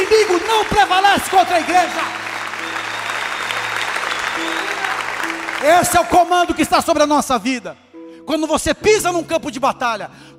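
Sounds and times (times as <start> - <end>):
audience applauding: 0.0 - 6.5
speech: 0.2 - 2.3, 5.6 - 10.3.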